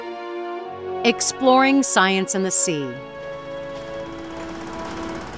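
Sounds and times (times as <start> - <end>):
speech: 1.0 - 3.2
droning engine hum: 3.2 - 5.3
pile driver pounding: 3.7 - 5.3.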